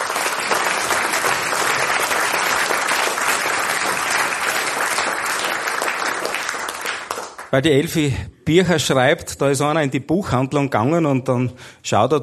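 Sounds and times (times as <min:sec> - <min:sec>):
audience applause: 0:00.0 - 0:07.6
speech: 0:07.5 - 0:12.2.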